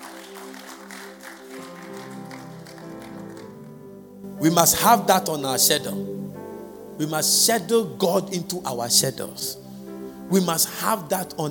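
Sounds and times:
audience clapping: 0.0 - 4.1
instrumental music with held tones: 0.0 - 11.4
speech: 4.4 - 9.7, 10.3 - 11.4.

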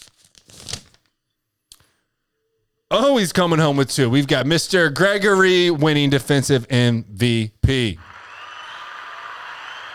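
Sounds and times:
paper envelope handled and opened at a sports awards announcement: 0.0 - 1.1
speech: 2.9 - 8.1.

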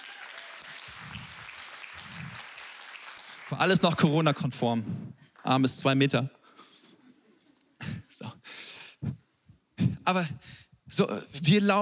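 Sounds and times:
audience applause: 0.0 - 4.8
speech: 3.5 - 6.4, 10.1 - 11.7.

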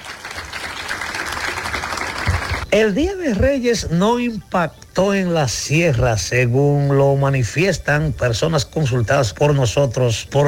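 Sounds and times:
applause: 0.0 - 2.6
speech: 2.7 - 10.4.

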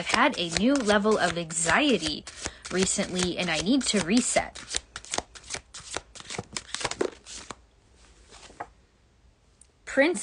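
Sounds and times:
speech: 0.0 - 4.8, 10.0 - 10.2
tarot cards being shuffled: 0.0 - 7.6.

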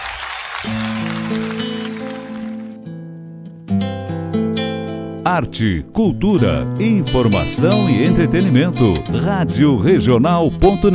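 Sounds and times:
audience applause: 0.0 - 2.8
speech: 0.6 - 1.6, 5.3 - 10.9.

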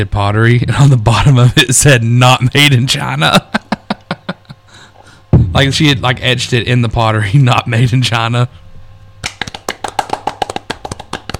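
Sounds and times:
speech: 0.0 - 3.6, 5.6 - 8.6
laughter: 3.2 - 4.7
golf clap: 9.2 - 11.3.

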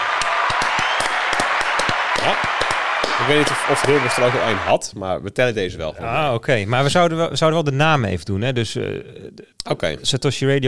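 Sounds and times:
crowd applauding: 0.0 - 4.8
speech: 2.2 - 10.6.

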